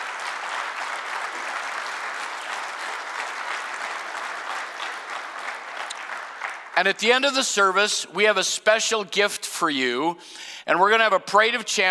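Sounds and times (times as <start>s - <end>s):
audience applause: 0.0s - 7.0s
speech: 6.8s - 11.8s.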